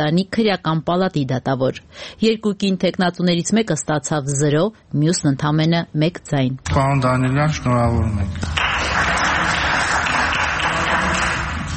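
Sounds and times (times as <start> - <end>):
speech: 0.0 - 9.1
applause in parliament after a vote electing a judge: 8.4 - 11.7.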